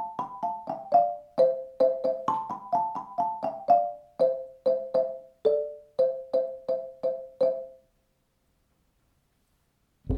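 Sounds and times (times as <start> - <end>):
African xylophone: 0.0 - 7.9.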